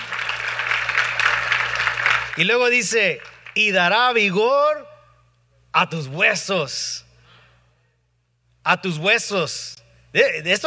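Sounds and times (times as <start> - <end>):
crowd applauding: 0.0 - 3.7
low steady hum: 0.0 - 10.6
speech: 2.4 - 4.9, 5.8 - 7.0, 8.7 - 10.6.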